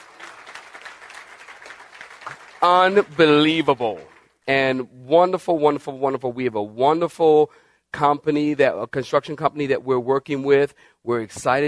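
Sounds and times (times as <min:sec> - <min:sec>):
audience clapping hands: 0:00.0 - 0:04.4
speech: 0:02.6 - 0:11.6.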